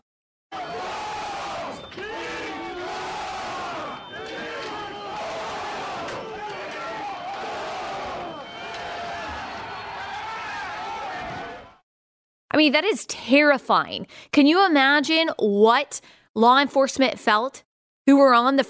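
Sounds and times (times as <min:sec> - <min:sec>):
crowd shouting while storming police lines: 0:00.5 - 0:11.8
speech: 0:12.6 - 0:18.6.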